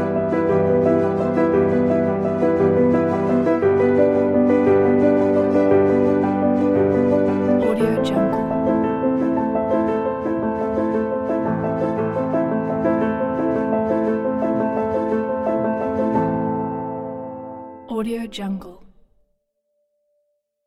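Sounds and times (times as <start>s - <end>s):
inspiring piano: 0.0s - 19.3s.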